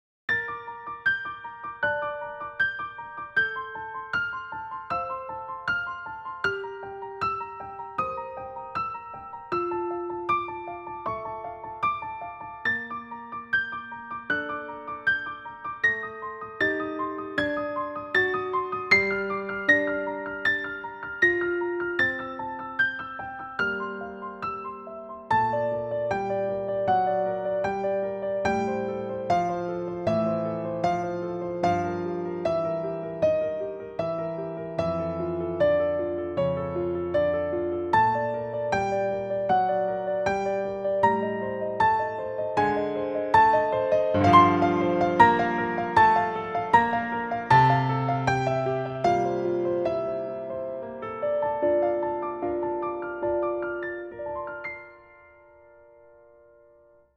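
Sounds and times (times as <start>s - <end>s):
piano arrangement: 0.3s - 57.1s.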